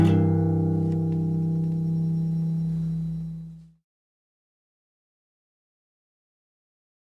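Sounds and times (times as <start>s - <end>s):
soft ambience: 0.2s - 3.8s.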